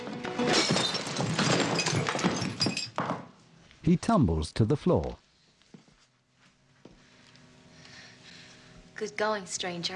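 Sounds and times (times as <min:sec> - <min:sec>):
glass bottle smashed over a man's head: 0:00.2 - 0:03.2
speech: 0:03.9 - 0:05.2, 0:09.0 - 0:09.9.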